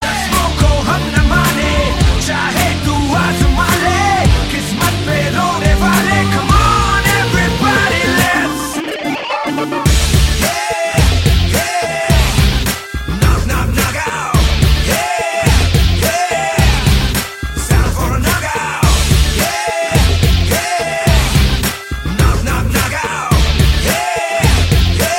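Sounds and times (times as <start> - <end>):
rock music: 0.0 - 25.1.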